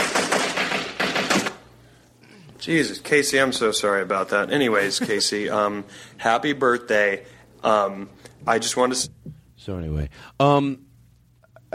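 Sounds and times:
gunshot sound effects: 0:00.0 - 0:01.7
speech: 0:02.7 - 0:10.9.

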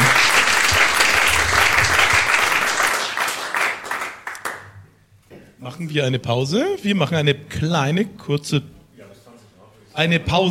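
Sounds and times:
audience applause: 0:00.0 - 0:04.7
speech: 0:05.8 - 0:08.8, 0:10.0 - 0:10.4.

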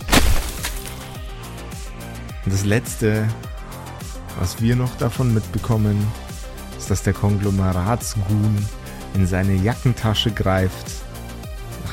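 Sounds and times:
ice fist smashing into the ground: 0:00.0 - 0:01.2
speech: 0:02.4 - 0:03.5, 0:04.4 - 0:06.2, 0:06.8 - 0:11.0.

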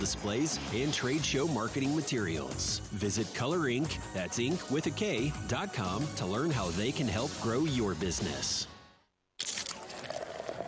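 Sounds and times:
speech: 0:00.0 - 0:08.7
Coors Light beer being poured: 0:09.4 - 0:10.6.

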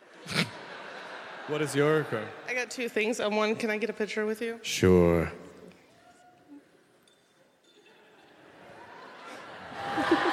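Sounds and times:
laughter: 0:00.0 - 0:02.5, 0:07.9 - 0:10.3
speech: 0:01.5 - 0:05.4
wind chimes ringing: 0:07.0 - 0:08.3.

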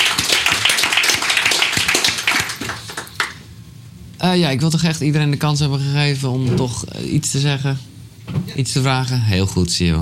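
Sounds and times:
audience applause: 0:00.0 - 0:03.5
speech: 0:04.2 - 0:07.9, 0:08.6 - 0:10.0.

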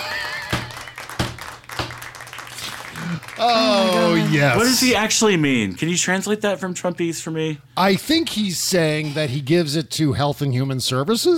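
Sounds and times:
small round of applause: 0:00.0 - 0:04.8
speech: 0:03.4 - 0:11.3.

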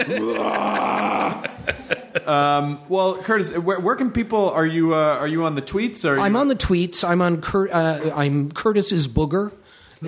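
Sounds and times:
laughter: 0:00.0 - 0:02.8
speech: 0:00.0 - 0:10.0
person belching: 0:00.1 - 0:01.5.

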